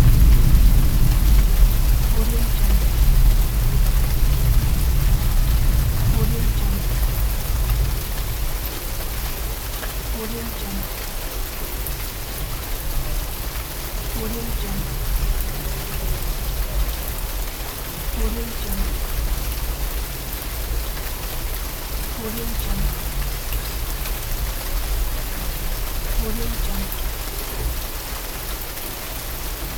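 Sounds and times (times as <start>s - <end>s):
thunder: 0.0s - 8.6s
rain: 0.0s - 29.7s.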